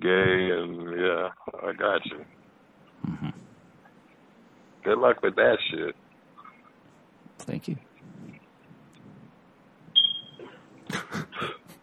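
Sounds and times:
speech: 0:00.0 - 0:00.2, 0:07.4 - 0:07.9
bursts of noise: 0:00.0 - 0:11.8
smoke alarm low-battery chirp: 0:09.9 - 0:10.6.

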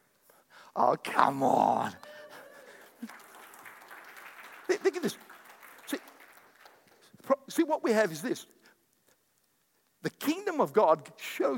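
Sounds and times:
speech: 0:00.8 - 0:02.1, 0:07.6 - 0:08.6, 0:10.3 - 0:11.5
audience applauding: 0:02.0 - 0:07.2.

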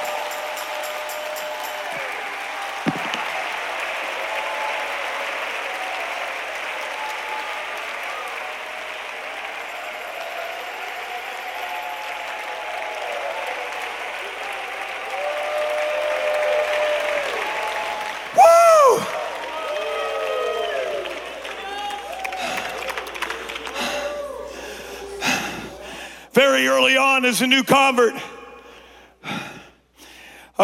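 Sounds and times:
audience clapping and cheering: 0:00.0 - 0:30.6
speech: 0:27.2 - 0:28.3.

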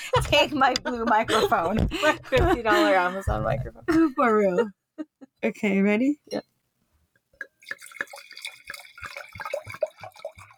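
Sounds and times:
laughter: 0:00.0 - 0:03.3
speech: 0:00.2 - 0:06.5
wine pouring into a glass: 0:07.4 - 0:10.5.

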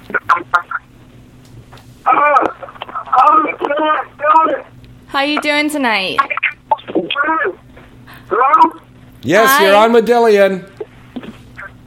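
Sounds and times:
caller's radio playing over telephone line: 0:00.0 - 0:00.9, 0:02.0 - 0:04.7, 0:06.1 - 0:09.9
low steady hum: 0:00.0 - 0:11.8
speech: 0:05.2 - 0:06.3, 0:09.2 - 0:10.7.

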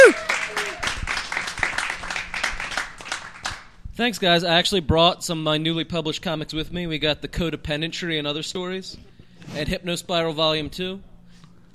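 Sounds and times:
audience applause for a stand-up comedian: 0:00.0 - 0:03.7
speech: 0:04.0 - 0:11.1.

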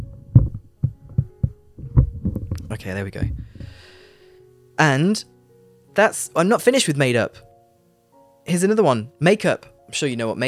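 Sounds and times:
microphone being adjusted, creaking: 0:00.0 - 0:03.8
speech: 0:02.7 - 0:03.9, 0:04.8 - 0:05.3, 0:06.0 - 0:07.5, 0:08.5 - 0:10.4.

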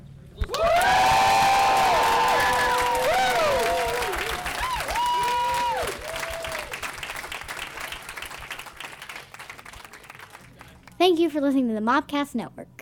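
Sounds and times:
audience cheering: 0:00.5 - 0:10.4
speech: 0:11.3 - 0:12.8.

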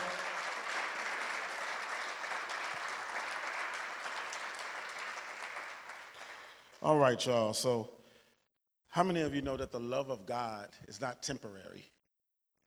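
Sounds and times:
audience applause for a DJ at a turntablism event: 0:00.0 - 0:06.5
speech: 0:06.8 - 0:08.0, 0:09.0 - 0:12.0.

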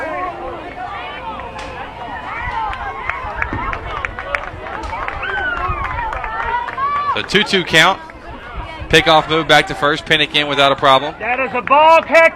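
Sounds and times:
Hornet fans babbling at a baseball game: 0:00.0 - 0:12.3
baseball crowd clapping: 0:02.4 - 0:08.2, 0:10.8 - 0:12.3
speech: 0:07.2 - 0:08.1, 0:08.9 - 0:12.3.

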